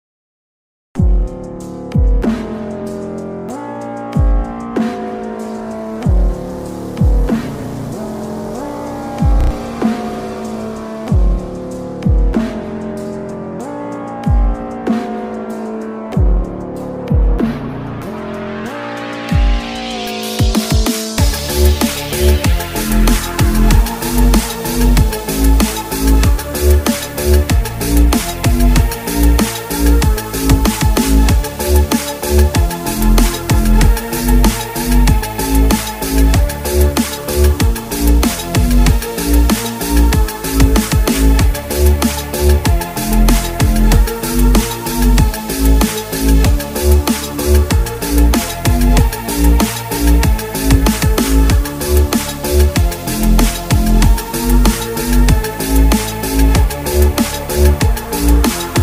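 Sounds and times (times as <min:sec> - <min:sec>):
retro funk music: 0:01.0 - 0:58.8.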